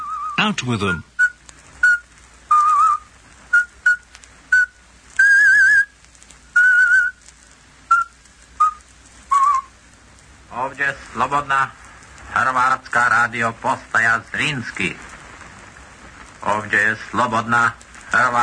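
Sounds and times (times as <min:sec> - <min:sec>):
person whistling a traditional folk song: 0:00.0 - 0:00.4, 0:01.2 - 0:07.2, 0:07.9 - 0:09.7
speech: 0:00.4 - 0:01.1, 0:10.8 - 0:15.1, 0:16.4 - 0:18.4.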